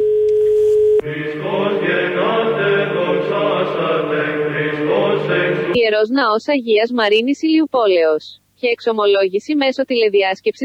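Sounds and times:
telephone line tone during an outgoing call to a church in Ilioupoli, Greece: 0.0s - 1.1s
bright tuneful music: 1.0s - 5.8s
speech: 5.8s - 10.6s.

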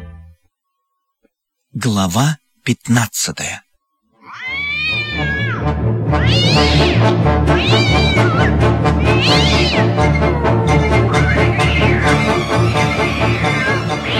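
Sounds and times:
speech: 1.9s - 3.7s, 5.6s - 10.4s
fighting cats meowing and yowling at a St. Bernard dog: 4.1s - 14.1s.

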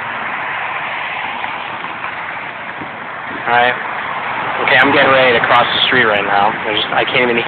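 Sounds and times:
cars going by on a loud street: 0.0s - 7.4s
speech: 3.4s - 3.9s, 4.6s - 7.4s.

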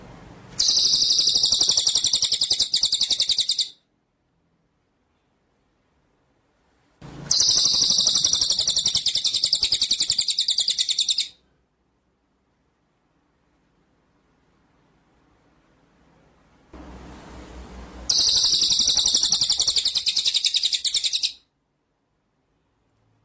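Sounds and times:
white-rumped shama rattling trill: 0.6s - 3.8s, 7.3s - 11.3s, 18.1s - 21.4s.

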